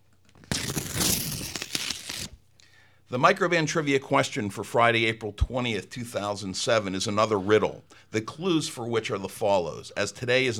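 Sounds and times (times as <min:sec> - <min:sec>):
envelope paper crinkling and tearing open: 0:00.3 - 0:02.4
speech: 0:03.1 - 0:10.5.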